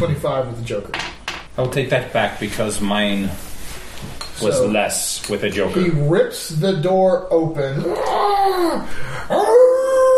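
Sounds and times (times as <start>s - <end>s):
speech: 0.0s - 9.6s
werewolf howl sound effect: 7.8s - 10.1s.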